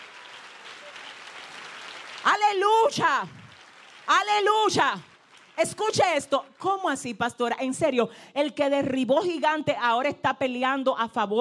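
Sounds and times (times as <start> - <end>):
audience applause: 0.0 - 6.6
speech: 2.2 - 3.4, 4.1 - 11.4.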